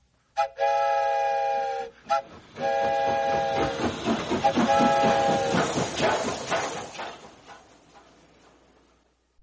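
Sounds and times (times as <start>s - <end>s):
toy train whistle being blown: 0.4s - 5.6s
rhythmic chugging pulses: 2.7s - 7.0s.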